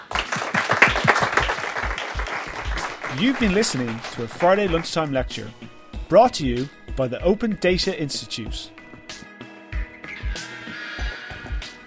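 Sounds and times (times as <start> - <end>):
applause after a lecture: 0.0 - 5.1
speech: 3.1 - 8.8.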